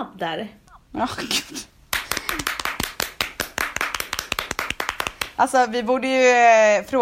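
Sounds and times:
speech: 0.2 - 1.7, 5.4 - 7.0
hands clapping, small applause: 1.9 - 5.5.

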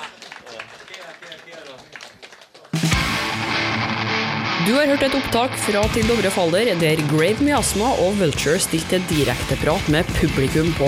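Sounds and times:
audience applause: 0.0 - 3.7
speech: 4.7 - 10.8.

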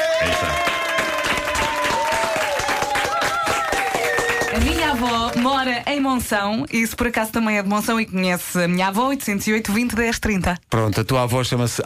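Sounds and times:
audience applause: 0.0 - 6.1
speech: 0.2 - 0.7, 5.0 - 11.8.

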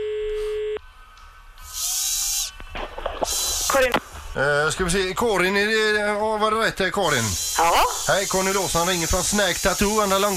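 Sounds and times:
loud hissing mechanical whir: 1.5 - 4.4, 7.1 - 10.3
tattoo machine buzzing: 1.6 - 3.9, 7.1 - 10.3
speech: 3.8 - 10.3.

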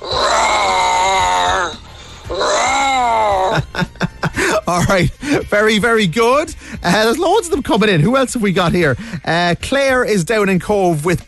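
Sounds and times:
person imitating tiger growling roars: 0.0 - 3.6
laughter: 3.3 - 5.5
speech: 4.7 - 11.2.

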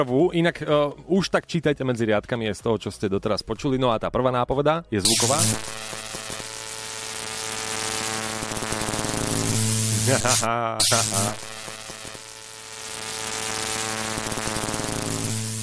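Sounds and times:
speech: 0.0 - 6.0, 10.1 - 11.5
electric bug zapper killing insects: 5.1 - 15.6.

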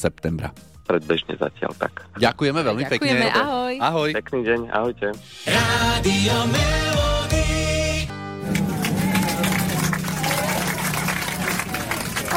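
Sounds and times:
speech: 0.0 - 7.0
passengers applauding on an airplane after landing: 8.4 - 12.3.

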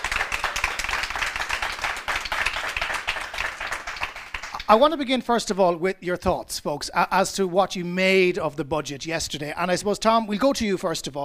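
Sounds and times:
audience applause: 0.0 - 4.6
speech: 4.7 - 11.2.

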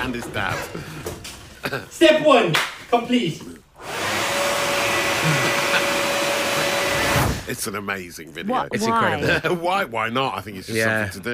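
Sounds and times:
speech: 0.0 - 4.0, 7.5 - 11.3
leaf blower running: 3.8 - 7.5
laughter: 4.9 - 7.1, 8.8 - 9.8.

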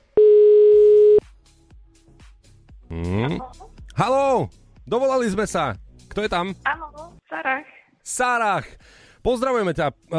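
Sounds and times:
ringback tone from an outgoing phone call to a listener: 0.2 - 1.2
speech: 4.0 - 10.1.

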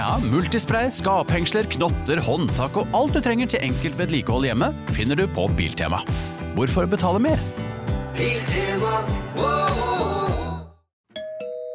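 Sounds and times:
speech: 0.1 - 7.6, 8.2 - 10.1
doorbell ding-dong: 11.1 - 11.7.

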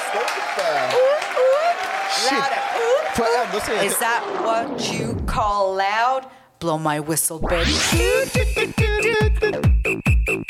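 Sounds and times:
audience clapping: 0.0 - 4.6
speech: 0.1 - 10.4.

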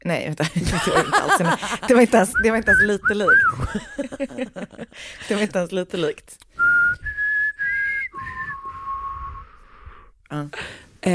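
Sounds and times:
speech: 0.0 - 7.1, 10.3 - 11.1
laughter: 0.5 - 6.1
person whistling a short melody imitating a text message tone: 6.6 - 9.6.

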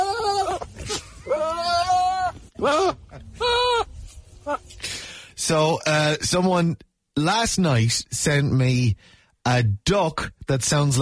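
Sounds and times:
goat making a human-sounding cry: 0.0 - 4.6
speech: 2.6 - 3.6, 5.5 - 11.0.

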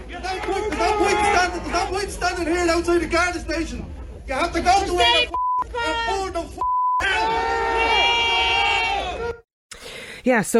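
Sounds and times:
crowd cheering and shouting at an anti-immigration protest: 0.0 - 2.2, 4.8 - 9.4
speech: 1.9 - 6.6, 10.2 - 10.5
short steady beep tone: 5.3 - 5.7, 6.6 - 7.0.

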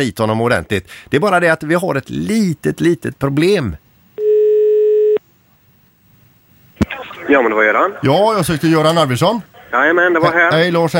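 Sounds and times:
speech: 0.0 - 3.8, 7.3 - 10.9
telephone ringback tone of outgoing call: 4.2 - 5.2.

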